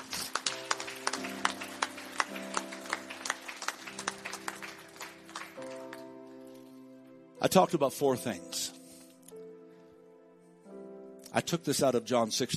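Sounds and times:
audience hand clapping: 0:00.0 - 0:06.7
speech: 0:07.4 - 0:08.7, 0:11.4 - 0:12.5.

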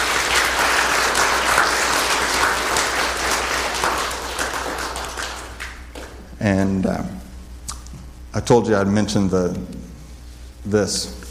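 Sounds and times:
crowd applauding: 0:00.0 - 0:06.2
speech: 0:06.4 - 0:07.2, 0:08.4 - 0:09.9, 0:10.6 - 0:11.2.

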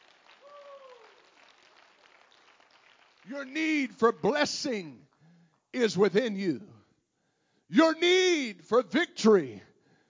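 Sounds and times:
audience clapping hands: 0:00.0 - 0:04.4
speech: 0:03.3 - 0:05.1, 0:05.7 - 0:06.7, 0:07.7 - 0:09.7.

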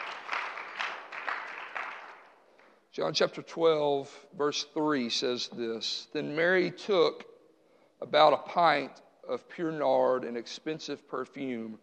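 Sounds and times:
audience hand clapping: 0:00.0 - 0:02.7
speech: 0:03.0 - 0:07.3, 0:08.0 - 0:11.8.

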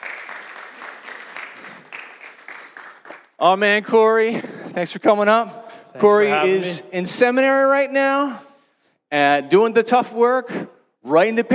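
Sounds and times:
audience applause: 0:00.0 - 0:03.6
speech: 0:03.4 - 0:08.5, 0:09.1 - 0:11.5.

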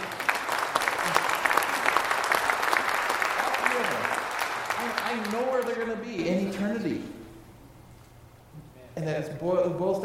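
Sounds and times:
audience applause: 0:00.0 - 0:05.9
speech: 0:05.2 - 0:07.2, 0:09.0 - 0:10.0.

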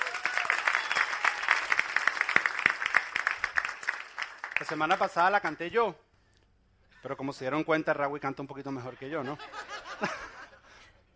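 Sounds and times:
audience applause: 0:00.0 - 0:05.5
speech: 0:04.6 - 0:06.0, 0:07.0 - 0:10.3
laughter: 0:08.7 - 0:10.9.

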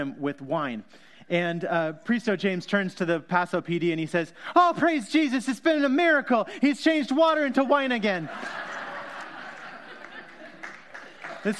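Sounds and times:
speech: 0:00.0 - 0:08.7
laughter: 0:07.4 - 0:11.5
polite courtesy clapping from audience: 0:08.4 - 0:11.5.

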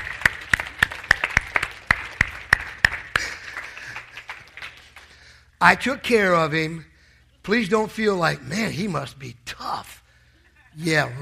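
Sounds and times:
audience applause: 0:00.0 - 0:05.3
speech: 0:05.6 - 0:09.8, 0:10.8 - 0:11.1.

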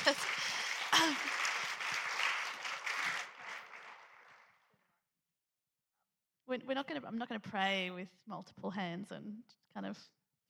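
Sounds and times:
crowd applause: 0:00.0 - 0:04.6
speech: 0:00.1 - 0:00.4, 0:01.0 - 0:01.4, 0:06.6 - 0:10.2.

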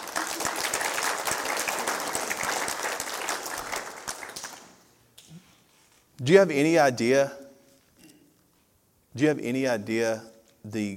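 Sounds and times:
audience applause: 0:00.0 - 0:04.8
speech: 0:06.2 - 0:07.4, 0:09.2 - 0:10.9.

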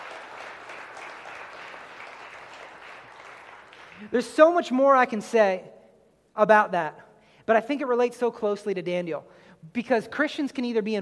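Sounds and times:
audience clapping: 0:00.0 - 0:04.2
speech: 0:04.0 - 0:05.8, 0:06.4 - 0:11.0.

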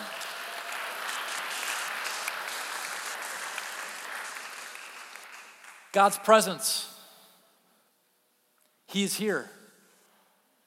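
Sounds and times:
audience applause: 0:00.0 - 0:06.0
speech: 0:06.0 - 0:06.9, 0:08.9 - 0:09.6.

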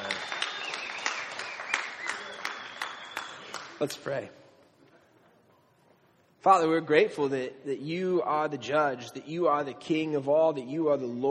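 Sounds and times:
audience clapping: 0:00.0 - 0:04.2
speech: 0:03.8 - 0:04.4, 0:06.4 - 0:11.2.

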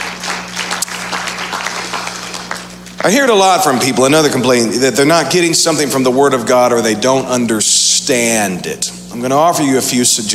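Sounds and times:
audience clapping: 0:00.0 - 0:03.7
speech: 0:03.0 - 0:10.3.

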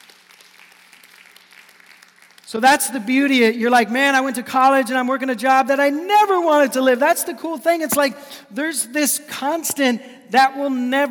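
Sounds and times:
audience hand clapping: 0:00.0 - 0:02.5
speech: 0:02.5 - 0:11.0.

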